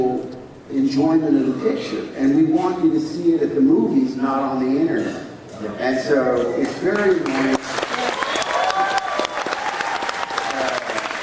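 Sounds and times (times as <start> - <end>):
speech: 0.8 - 7.6
audience applause: 7.0 - 11.2.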